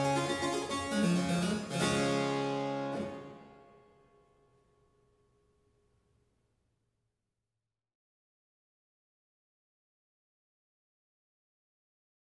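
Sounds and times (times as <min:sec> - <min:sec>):
string trio playing a gigue allegro: 0:00.0 - 0:03.5.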